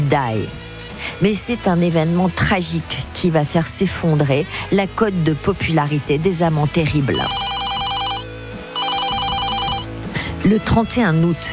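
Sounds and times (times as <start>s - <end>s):
low sustained musical background: 0.0s - 11.5s
speech: 0.1s - 7.5s, 10.4s - 11.5s
telephone ringing with trilling bell: 7.1s - 9.9s.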